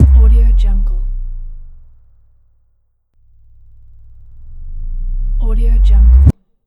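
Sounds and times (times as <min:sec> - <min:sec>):
sub bass drop: 0:00.0 - 0:06.4.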